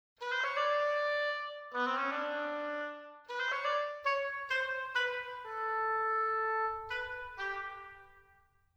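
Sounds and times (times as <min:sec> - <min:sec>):
oboe: 0:00.2 - 0:08.5.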